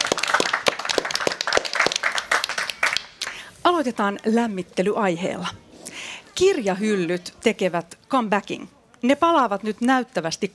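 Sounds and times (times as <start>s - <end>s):
audience applause: 0.0s - 3.4s
speech: 3.7s - 5.6s, 6.4s - 10.5s.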